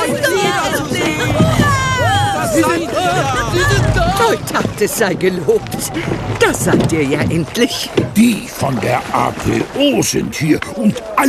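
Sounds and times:
village crowd on the beach shouting excitedly, greeting a rowboat: 0.0 - 4.8
laughter: 0.0 - 6.8
speech: 4.3 - 11.2.

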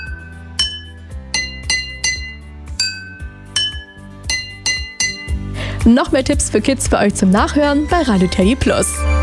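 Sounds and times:
egg spoons tapping water-filled drinking glasses: 0.0 - 5.4
speech: 5.8 - 9.1.

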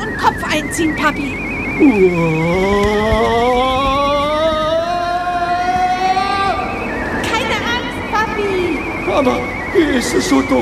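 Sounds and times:
car engine droning: 0.0 - 10.6
speech: 0.3 - 3.8, 9.2 - 10.6
roaring rumble: 1.2 - 10.6.

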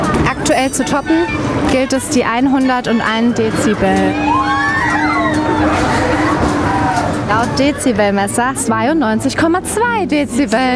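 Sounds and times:
people screaming on a fairground ride: 0.0 - 8.0
constant mechanical hum: 0.0 - 10.7
speech: 0.6 - 4.7, 7.3 - 10.7.

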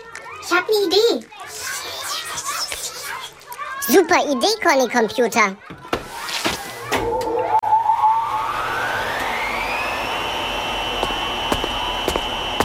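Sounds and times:
speech: 0.4 - 1.7, 3.9 - 5.7
household spin dryer motor whine kneading yeast dough: 7.2 - 12.6.

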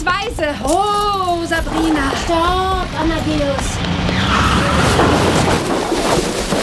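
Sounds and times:
speech: 0.1 - 6.3
car crashing into a hay wagon: 4.1 - 6.6.

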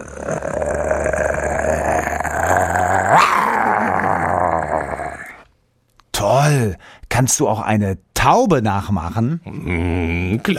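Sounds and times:
person imitating a growling tiger: 0.0 - 5.5, 9.4 - 10.5
speech: 7.2 - 10.5.

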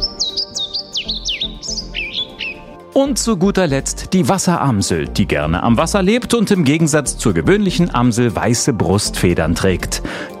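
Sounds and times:
European pied flycatcher singing: 0.0 - 2.8
speech: 3.0 - 10.3.

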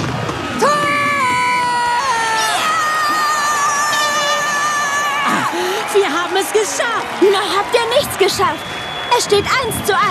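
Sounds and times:
stadium crowd cheering after a goal: 0.0 - 10.0
speech: 6.6 - 10.0.

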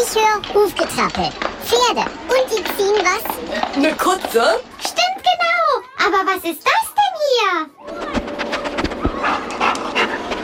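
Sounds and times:
speech: 0.1 - 5.4, 6.0 - 8.0
sniffer dog sniffing excitedly: 8.6 - 10.4.

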